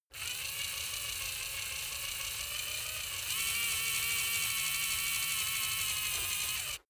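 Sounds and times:
servo moving high: 0.1s - 6.8s.

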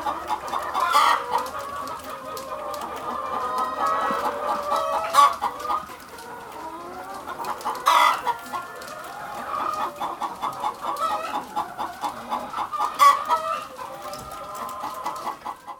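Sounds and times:
chickens clucking and cackling: 0.0s - 15.7s.

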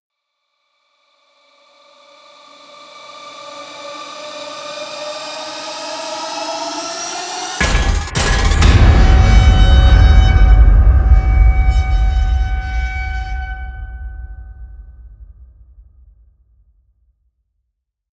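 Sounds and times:
metal hit: 7.6s - 15.7s.

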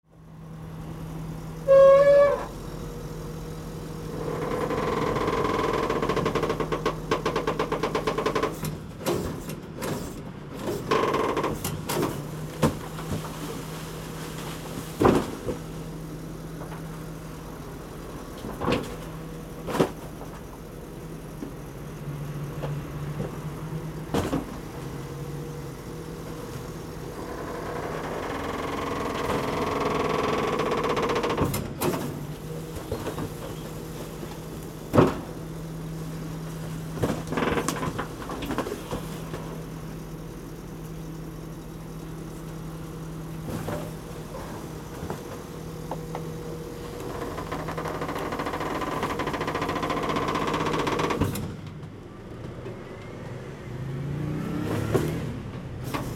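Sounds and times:
waste collection truck at work: 0.2s - 56.1s.

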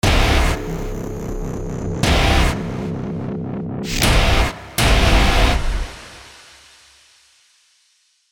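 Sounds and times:
hard distorted logo sound: 0.0s - 6.4s.

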